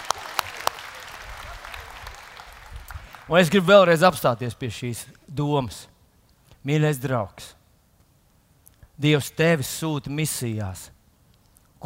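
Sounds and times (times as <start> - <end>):
sharp claps: 0.0 - 3.6
speech: 3.3 - 5.9, 6.6 - 7.6, 9.0 - 11.0.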